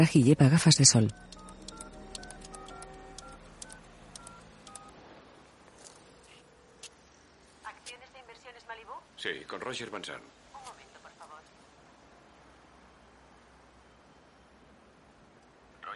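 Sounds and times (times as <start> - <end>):
speech: 0.0 - 1.4, 9.7 - 10.4
public payphone keypad tones in the 1995 film Heat: 0.0 - 4.9
payphone clicks: 1.1 - 4.9.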